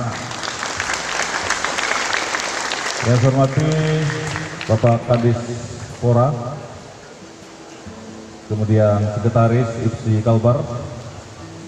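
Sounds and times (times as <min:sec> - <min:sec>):
applause: 0:00.0 - 0:06.0
speech: 0:03.0 - 0:06.6, 0:08.5 - 0:11.0.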